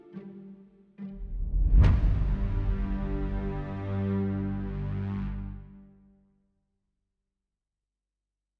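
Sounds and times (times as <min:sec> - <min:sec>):
emotional orchestral strings: 0:00.0 - 0:06.1.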